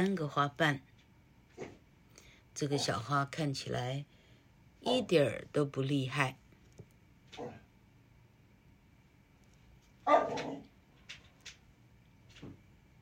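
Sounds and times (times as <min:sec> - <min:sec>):
speech: 0:00.0 - 0:00.9, 0:02.6 - 0:04.1, 0:04.8 - 0:06.4, 0:10.1 - 0:10.7
small dog barking: 0:07.4 - 0:07.7, 0:10.0 - 0:10.7.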